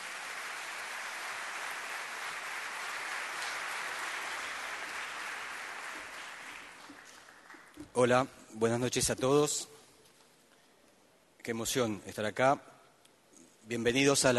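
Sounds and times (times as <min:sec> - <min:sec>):
audience applause: 0:00.0 - 0:07.8
speech: 0:08.0 - 0:09.7, 0:11.4 - 0:12.7, 0:13.7 - 0:14.3.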